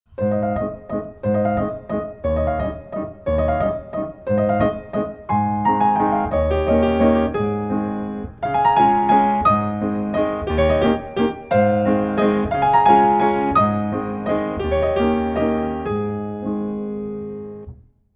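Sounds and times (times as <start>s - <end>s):
landler dance music: 0.6s - 16.1s.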